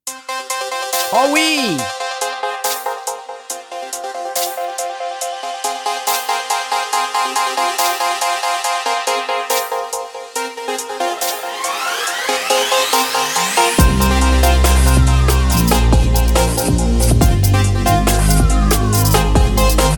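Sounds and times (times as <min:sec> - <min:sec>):
Memory Moog synthesizer plugin polyphonic chords with filter sweep: 0:00.2 - 0:19.9
speech: 0:01.1 - 0:02.0
heavy pulsing synthesizer bass line: 0:13.0 - 0:19.9.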